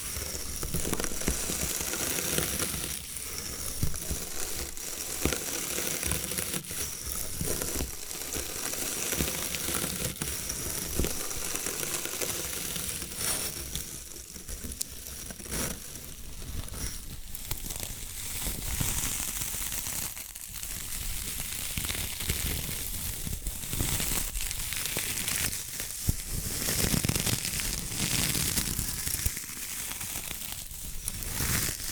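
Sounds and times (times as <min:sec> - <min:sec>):
bamboo tapped, scratched and brushed: 0:00.0 - 0:31.9.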